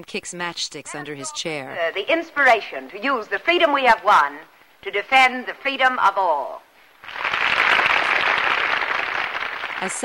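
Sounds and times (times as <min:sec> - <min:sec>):
speech: 0:00.0 - 0:07.3, 0:09.8 - 0:10.0
women in an audience applauding in a standing ovation: 0:07.0 - 0:10.0.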